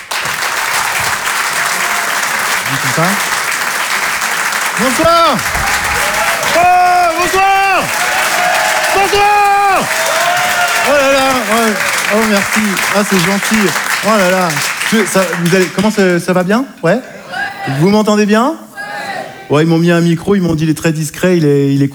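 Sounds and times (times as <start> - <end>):
audience applause and cheering: 0.0 - 16.4
speech: 2.7 - 3.3, 4.8 - 5.7, 6.6 - 8.0, 9.0 - 10.1, 10.8 - 18.6, 19.5 - 21.9.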